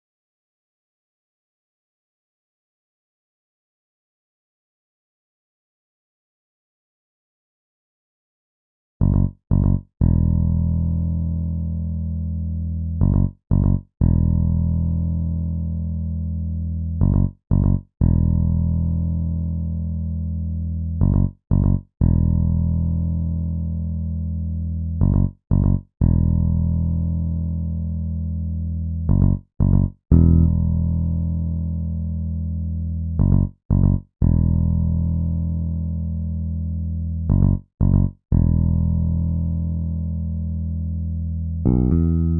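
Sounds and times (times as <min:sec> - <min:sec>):
bass: 0:09.0 - 0:42.3.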